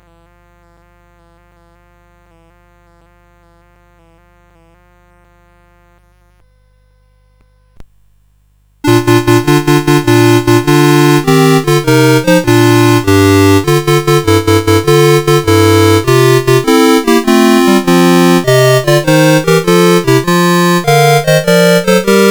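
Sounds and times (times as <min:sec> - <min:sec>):
carol on CSG8580R5 sound chip: 0:08.9 - 0:22.2.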